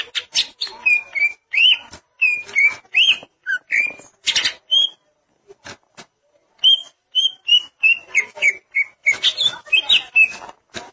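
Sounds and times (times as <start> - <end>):
greater green leafbird song: 0.0 - 5.0, 6.6 - 10.4.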